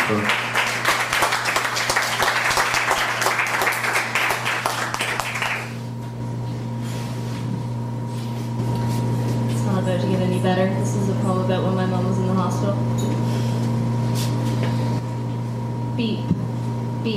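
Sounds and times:
audience applauding a performer: 0.0 - 5.8
low constant hum: 0.0 - 17.1
speech: 0.1 - 0.4, 10.4 - 11.3.

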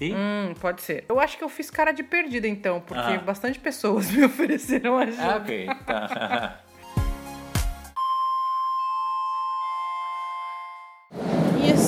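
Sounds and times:
speech: 0.0 - 6.6
laughter: 4.0 - 6.6
subway station chime: 8.0 - 11.1
rumbling noise: 11.1 - 11.8.

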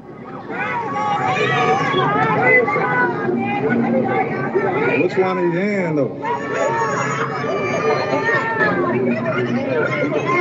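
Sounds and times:
crowd cheering at a rally: 0.0 - 5.5, 6.1 - 10.3
speech: 1.9 - 7.5.

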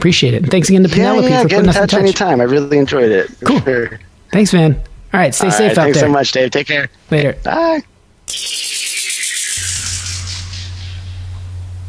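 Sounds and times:
speech: 0.0 - 8.8
birds chirping: 8.3 - 10.8
low hum: 8.3 - 11.8.

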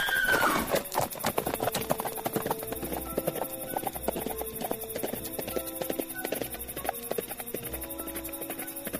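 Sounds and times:
horse whinny: 0.0 - 0.8
thundering galloping horse hoofbeats: 0.0 - 8.9
tonal music: 1.0 - 8.9.

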